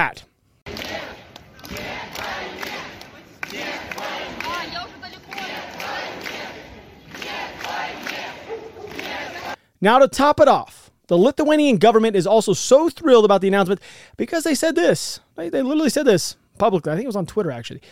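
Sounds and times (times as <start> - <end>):
speech: 0.0 - 0.3, 9.8 - 17.9
protest crowd shouting against the war in St. Petersburg: 0.7 - 9.6.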